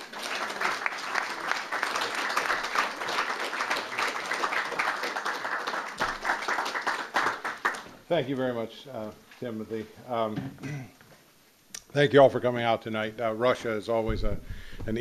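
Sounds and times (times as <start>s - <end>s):
audience applause welcoming a political science professor: 0.0s - 7.9s
speech: 8.1s - 11.0s, 11.9s - 14.9s.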